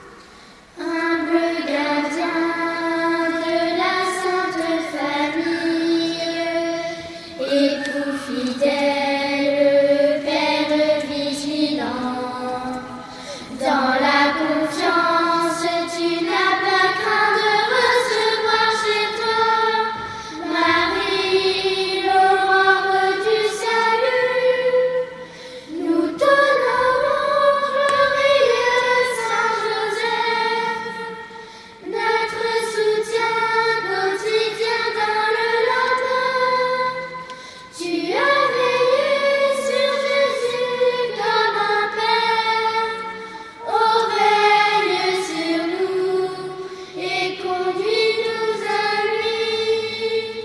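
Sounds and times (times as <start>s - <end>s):
chant: 0.8s - 50.4s.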